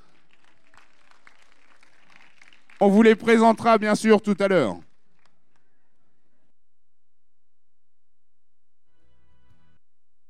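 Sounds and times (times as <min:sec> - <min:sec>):
faint audience applause as jury members take their seats at an evening show: 0:00.0 - 0:05.4
speech: 0:02.8 - 0:04.9.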